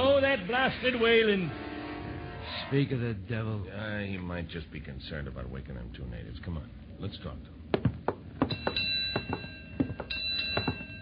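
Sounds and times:
faint hum: 0.0s - 11.0s
speech: 0.4s - 1.7s, 2.5s - 7.9s
ship's bell striking four bells: 8.4s - 11.0s.

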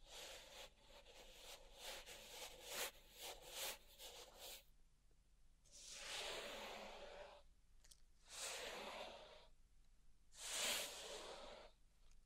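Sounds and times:
gritty scratches and taps from a salt tray and garden tools: 0.0s - 4.6s, 5.7s - 7.5s, 8.2s - 9.5s, 10.4s - 11.8s.

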